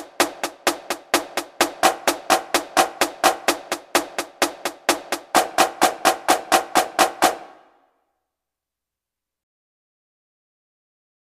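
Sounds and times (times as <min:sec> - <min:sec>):
drum flams: 0:00.0 - 0:07.6.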